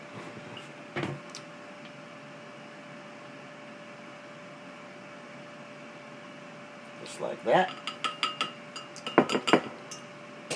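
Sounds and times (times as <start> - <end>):
speech: 7.1 - 7.9
teaspoon clinking against bowl: 7.6 - 10.0.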